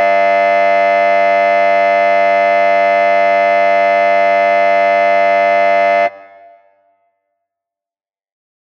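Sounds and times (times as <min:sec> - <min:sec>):
theatre or hall opening buzzer with reverb: 0:00.0 - 0:06.6.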